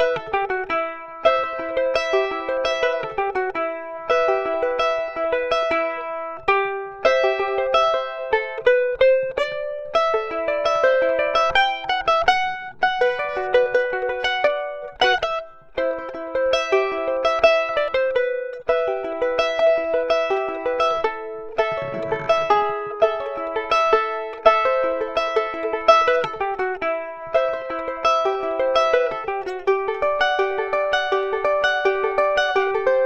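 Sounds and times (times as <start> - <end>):
charango fingerpicking through a preamp: 0.0 - 33.0.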